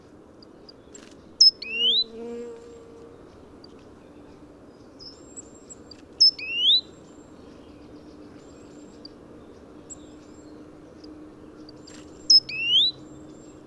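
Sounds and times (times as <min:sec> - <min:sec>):
great tit whistling calls: 0:05.0 - 0:10.5, 0:11.7 - 0:13.6.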